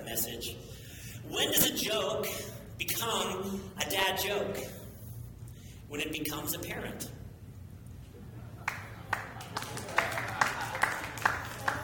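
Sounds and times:
speech: 0.1s - 4.8s, 5.9s - 7.2s
scattered polite golf applause: 8.6s - 11.8s.

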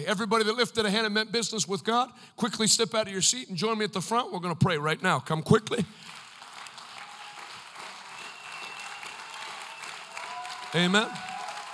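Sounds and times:
speech: 0.0s - 6.2s, 10.7s - 11.3s
audience clapping: 5.9s - 11.7s.

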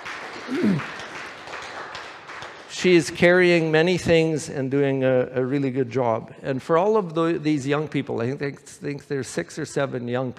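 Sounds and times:
round of applause: 0.0s - 3.3s
speech: 0.5s - 1.0s, 2.8s - 10.3s.

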